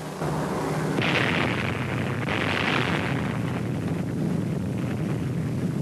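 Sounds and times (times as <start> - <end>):
atomic bomb explosion: 0.2 - 5.7.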